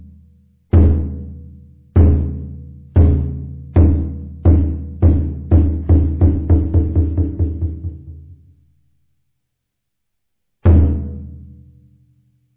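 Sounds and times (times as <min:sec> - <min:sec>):
Kyokushin drum: 0:00.7 - 0:08.4, 0:10.7 - 0:11.6.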